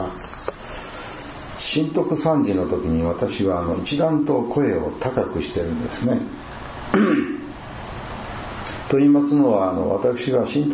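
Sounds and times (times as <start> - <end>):
bell cricket song: 0.0 - 2.9
low background hum: 0.0 - 10.7
speech: 1.7 - 6.5, 8.9 - 10.7.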